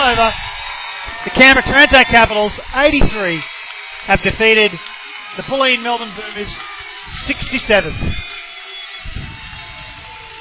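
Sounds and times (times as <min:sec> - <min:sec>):
home crowd in Canberra cheering after basketball win: 0:00.0 - 0:10.3
speech: 0:00.1 - 0:08.3.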